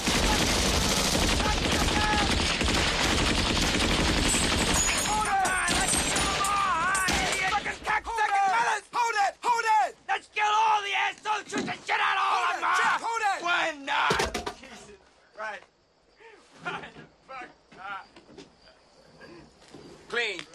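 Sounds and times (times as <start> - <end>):
people yelling: 0.0 - 2.6, 4.9 - 14.5
machine-gun fire from a gunboat in a Vietnam war film: 0.0 - 7.6.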